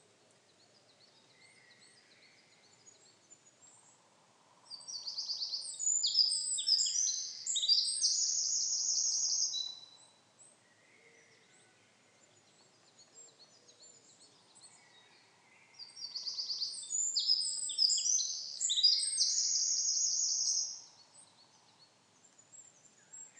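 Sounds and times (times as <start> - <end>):
Eurasian wren Troglodytes troglodytes singing: 4.7 - 10.0, 15.7 - 21.8.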